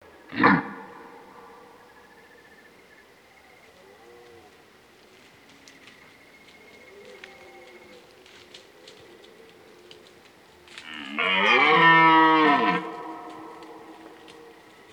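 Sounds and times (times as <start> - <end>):
red deer stag roaring: 0.3 - 1.6, 10.8 - 14.7.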